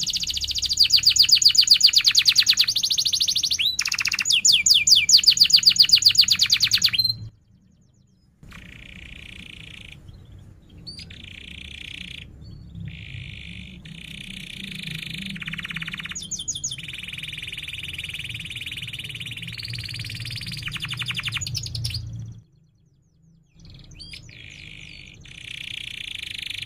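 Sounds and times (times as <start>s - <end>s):
canary trilling: 0.0s - 7.3s, 8.4s - 22.4s, 23.6s - 26.6s
low hum: 6.8s - 26.6s.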